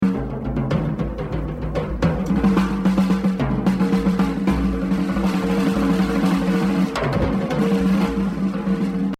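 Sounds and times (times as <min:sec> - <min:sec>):
jazz drumming exercise: 0:00.0 - 0:09.1.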